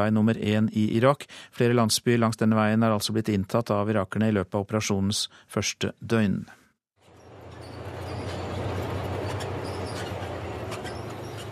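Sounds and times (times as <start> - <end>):
speech: 0.0 - 6.6
tanks rolling forward with deep engine drone: 7.0 - 11.5
grinding clanking tank track noise with metallic squeaks: 7.1 - 11.5.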